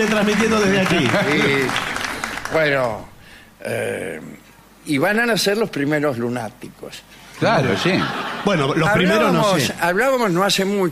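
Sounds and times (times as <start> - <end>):
speech: 0.0 - 1.9, 2.5 - 10.9
audience applause: 0.0 - 3.0
laughter: 0.6 - 1.9, 7.4 - 9.7.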